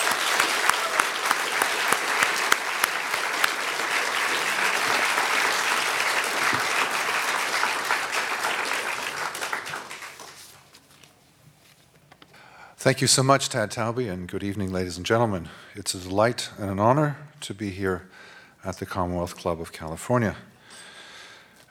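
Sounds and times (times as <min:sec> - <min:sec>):
sustained audience applause at the Commonwealth Club of California in San Francisco: 0:00.0 - 0:10.7
speech: 0:12.9 - 0:20.5.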